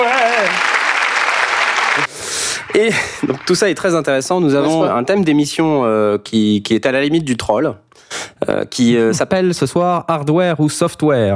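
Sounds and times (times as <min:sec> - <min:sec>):
applause: 0:00.0 - 0:04.1
laughter: 0:02.0 - 0:03.8, 0:04.4 - 0:05.1
speech: 0:02.8 - 0:07.8, 0:08.4 - 0:11.3.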